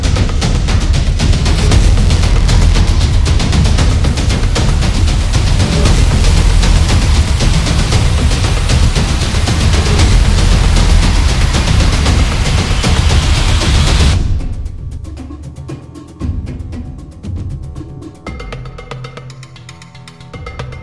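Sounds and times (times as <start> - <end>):
historical battle background music: 0.0 - 15.6.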